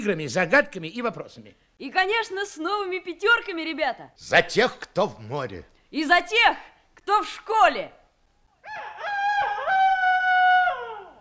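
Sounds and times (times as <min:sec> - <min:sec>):
speech: 0:00.0 - 0:08.0
rooster crowing: 0:08.6 - 0:11.1.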